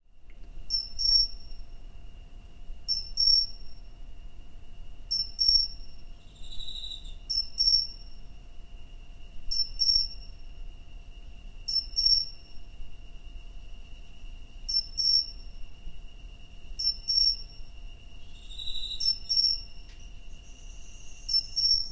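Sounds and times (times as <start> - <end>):
cricket song: 0.6 - 21.9.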